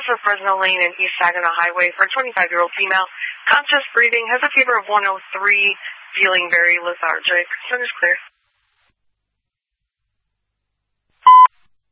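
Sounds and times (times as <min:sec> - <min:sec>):
speech: 0:00.1 - 0:08.4
radio pager test alert tone: 0:11.3 - 0:11.5.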